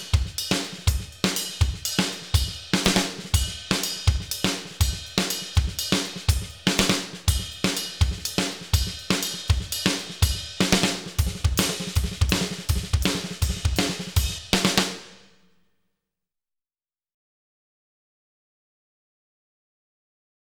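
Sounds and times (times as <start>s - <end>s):
trashy drums: 0.0s - 15.2s.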